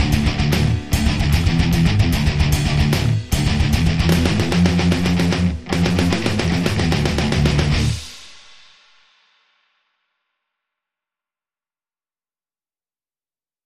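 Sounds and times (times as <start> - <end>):
metal version of a classical piece: 0.0 - 8.5.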